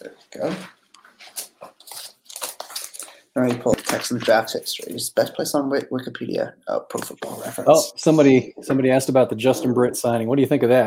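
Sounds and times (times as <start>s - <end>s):
speech: 0.3s - 0.8s, 3.4s - 10.8s
paper being torn and handled: 1.2s - 3.1s.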